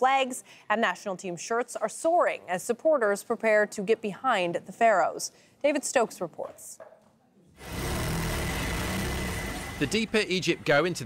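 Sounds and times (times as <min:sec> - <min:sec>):
speech: 0:00.0 - 0:06.9, 0:09.8 - 0:11.0
sewing machines running in a Cairo flag workshop: 0:07.6 - 0:11.0.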